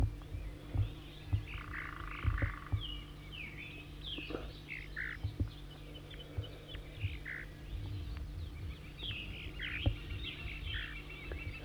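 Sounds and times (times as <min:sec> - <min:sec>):
bird giving zeezer calls: 0:00.0 - 0:11.6
chorus of croaking frogs: 0:00.0 - 0:11.6.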